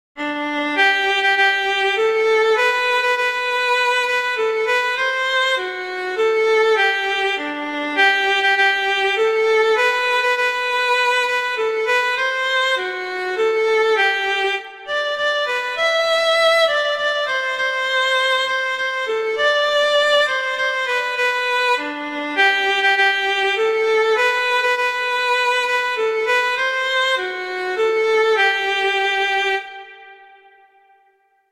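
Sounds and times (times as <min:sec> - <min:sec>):
violin melody: 0:00.2 - 0:31.4.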